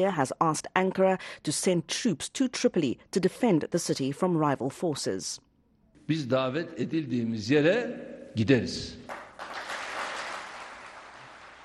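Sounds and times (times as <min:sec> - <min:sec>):
speech: 0:00.0 - 0:05.5, 0:06.1 - 0:09.2
party officials applauding: 0:09.1 - 0:11.6.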